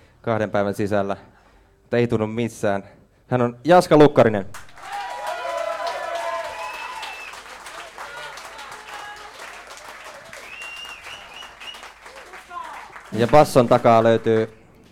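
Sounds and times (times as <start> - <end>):
speech: 0.2 - 1.3, 1.9 - 4.6, 13.2 - 14.6
audience applause for introduced musician: 4.6 - 14.9.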